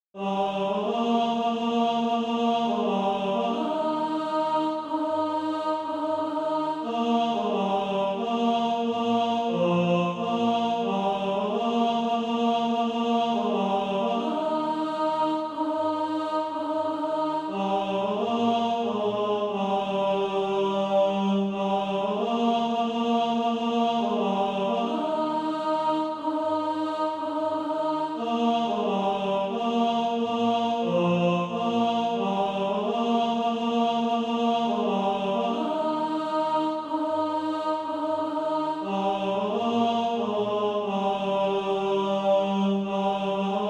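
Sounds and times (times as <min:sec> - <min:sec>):
tenor practice music: 0:00.2 - 0:43.6.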